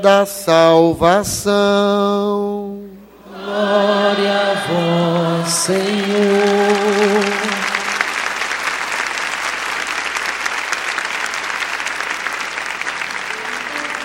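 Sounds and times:
speech: 0.0 - 2.9, 3.5 - 7.5
audience applauding: 5.5 - 14.0.

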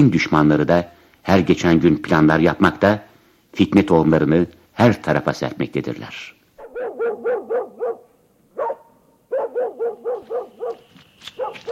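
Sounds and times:
speech: 0.0 - 6.4
mangy stray dog barking outside a house in Tabriz: 6.6 - 11.7.

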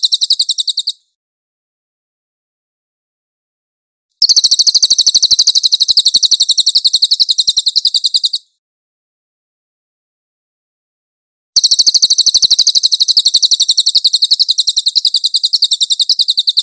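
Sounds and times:
Cililin bird giving a high chattering trill: 0.0 - 1.0, 4.2 - 8.5, 11.6 - 16.6.

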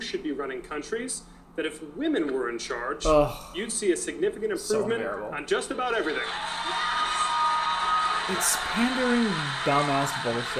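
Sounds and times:
speech: 0.2 - 7.0, 8.3 - 10.5
audience clapping: 6.1 - 10.5.

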